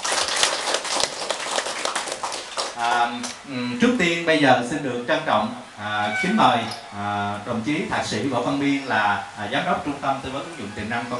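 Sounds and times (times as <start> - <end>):
audience applause: 0.0 - 3.4
speech: 2.8 - 11.1.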